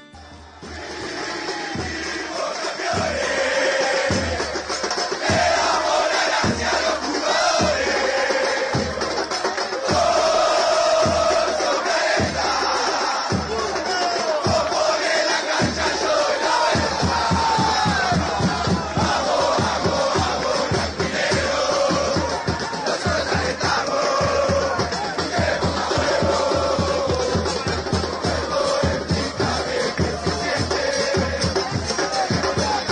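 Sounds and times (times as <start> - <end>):
football supporters chanting a stadium song: 0.0 - 32.9
steady pounding drum beat: 0.0 - 32.9.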